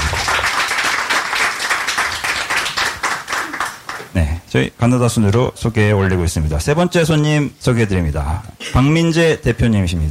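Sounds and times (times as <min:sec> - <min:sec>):
audience applause: 0:00.0 - 0:04.1
speech: 0:04.2 - 0:10.0.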